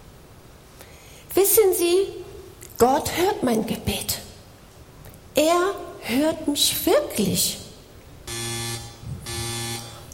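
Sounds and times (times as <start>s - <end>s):
speech: 1.4s - 2.2s, 2.8s - 4.2s, 5.4s - 7.6s
clothes dryer finished buzzer: 8.3s - 10.1s.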